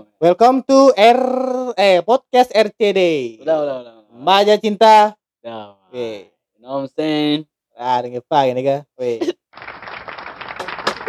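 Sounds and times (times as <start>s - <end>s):
speech: 0.0s - 9.8s
applause: 9.5s - 11.0s.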